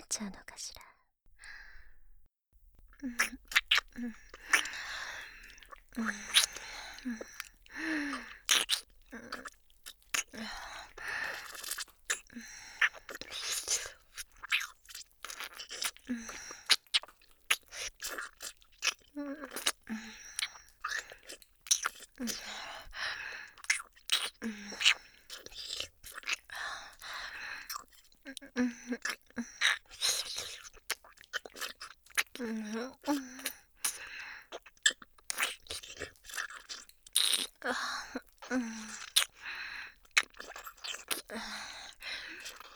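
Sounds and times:
breathy whispering: 0.0 - 1.0
speech: 0.1 - 0.8, 3.0 - 3.4, 4.0 - 4.2, 6.0 - 6.4, 7.0 - 7.3
ear-licking mouth sounds: 2.8 - 42.7.

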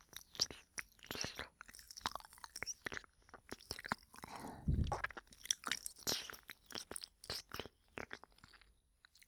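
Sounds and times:
ear licking: 0.1 - 8.6
ejaculation sound: 4.5 - 5.2.

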